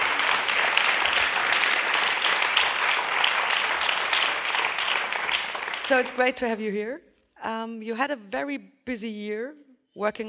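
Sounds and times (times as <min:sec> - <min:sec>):
crowd applauding: 0:00.0 - 0:06.4
speech: 0:05.9 - 0:10.2.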